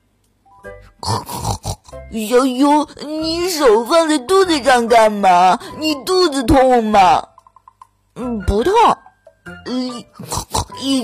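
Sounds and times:
pig grunting: 1.0 - 2.1, 9.9 - 11.0
speech: 2.1 - 7.3, 8.2 - 9.0, 9.7 - 11.0.

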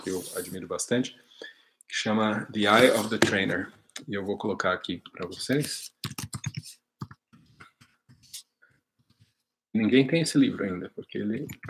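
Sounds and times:
speech: 0.0 - 6.3, 9.8 - 11.6
keyboard typing a book title: 5.9 - 8.0.

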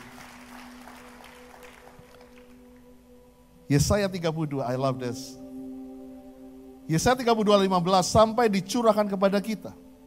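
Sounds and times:
audience applauding: 0.0 - 2.8
speech: 3.7 - 5.4, 6.9 - 9.8.

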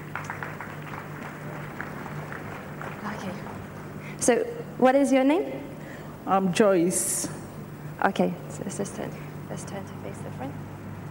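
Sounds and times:
light scattered clapping from a small audience: 0.0 - 3.9
low steady hum: 0.0 - 11.0
speech: 4.2 - 7.3, 8.0 - 10.7.

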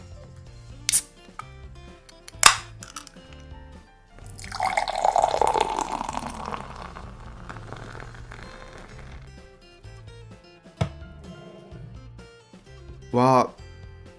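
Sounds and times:
beer opened with sharp clicks: 2.1 - 3.4, 4.2 - 9.2
beer poured into a glass: 4.2 - 9.3
speech: 13.2 - 13.5.

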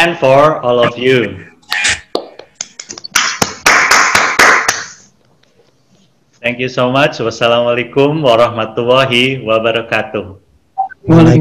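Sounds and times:
speech: 0.0 - 1.5, 6.4 - 10.4, 11.0 - 11.3
applause: 3.1 - 5.1.

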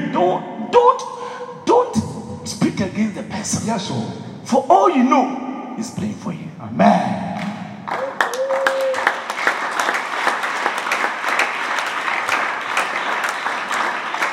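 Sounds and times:
speech: 0.2 - 1.8, 2.4 - 7.3
audience clapping: 7.4 - 14.3.

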